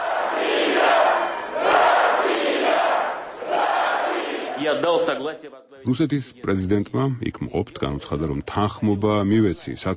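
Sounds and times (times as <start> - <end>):
stadium crowd shouting and chanting as Putin arrives: 0.0 - 5.2
speech: 4.6 - 9.9.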